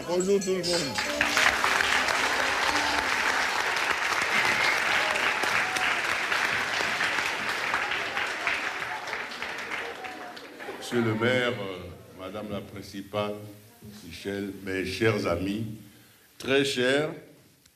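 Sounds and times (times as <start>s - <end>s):
speech: 0.1s - 1.4s, 10.9s - 15.8s, 16.4s - 17.7s
teenagers' standing ovation in a middle school: 0.9s - 11.6s.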